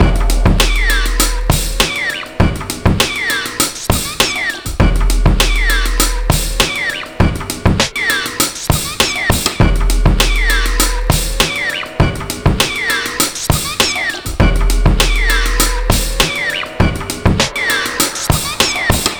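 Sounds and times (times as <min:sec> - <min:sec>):
breakbeat drums at 100 bpm: 0:00.0 - 0:19.1.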